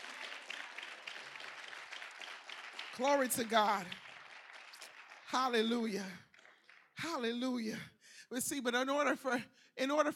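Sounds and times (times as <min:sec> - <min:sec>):
church congregation clapping during a sermon: 0:00.0 - 0:07.8
speech: 0:03.0 - 0:04.0, 0:05.3 - 0:06.3, 0:07.0 - 0:10.1.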